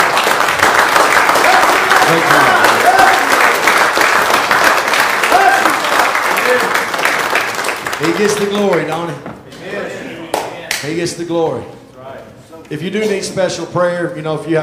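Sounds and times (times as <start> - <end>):
audience clapping: 0.0 - 9.2
speech: 2.1 - 2.6, 8.0 - 9.4, 10.8 - 11.8, 12.7 - 14.6.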